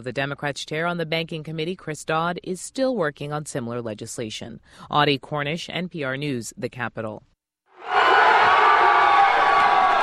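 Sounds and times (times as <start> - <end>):
speech: 0.0 - 8.0
huge crowd of New York Yankees fans cheering in Times Square: 7.8 - 10.0.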